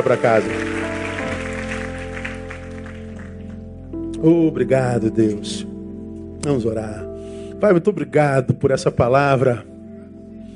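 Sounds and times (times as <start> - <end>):
audience applauding: 0.0 - 3.7
speech: 0.1 - 0.8, 4.2 - 5.6, 6.4 - 9.7.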